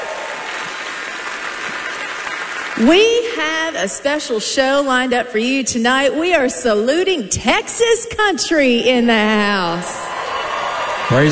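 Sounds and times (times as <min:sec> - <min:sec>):
audience applause at the Grand Ole Opry country music show: 0:00.0 - 0:03.4, 0:10.0 - 0:11.2
speech: 0:02.8 - 0:10.0.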